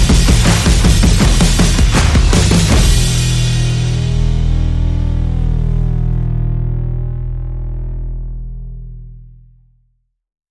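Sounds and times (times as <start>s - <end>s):
percussion: 0.0s - 6.2s
bass: 0.0s - 10.1s.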